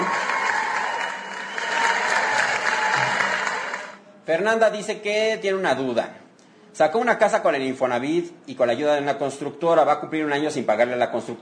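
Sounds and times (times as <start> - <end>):
applause: 0.0 - 4.0
speech: 4.3 - 6.2, 6.8 - 11.4.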